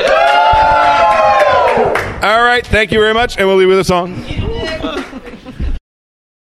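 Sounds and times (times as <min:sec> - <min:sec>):
live studio audience cheering and whooping: 0:00.0 - 0:02.6
speech: 0:02.6 - 0:04.4
laughter: 0:04.2 - 0:05.8.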